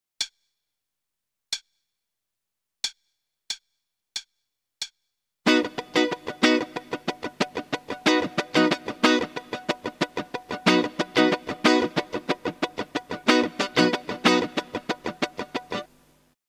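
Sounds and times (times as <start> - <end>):
starter guitar rhythm: 5.5 - 16.0.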